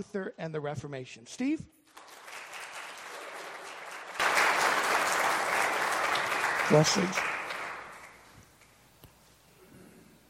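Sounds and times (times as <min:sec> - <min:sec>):
speech: 0:00.0 - 0:01.8, 0:06.7 - 0:07.4
First Baptist church congregation applauding to welcome a speaker: 0:01.9 - 0:08.8.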